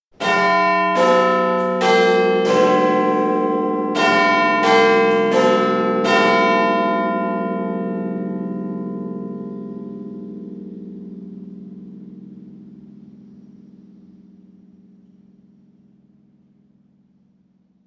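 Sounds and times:
Big Ben chiming half past the hour: 0:00.2 - 0:11.1.

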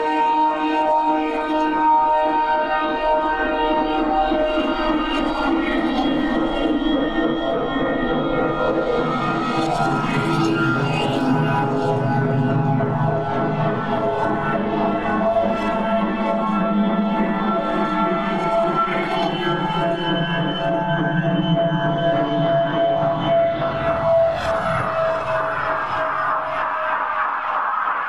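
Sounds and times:
horror drone bed with chopper flange: 0:00.0 - 0:28.0.

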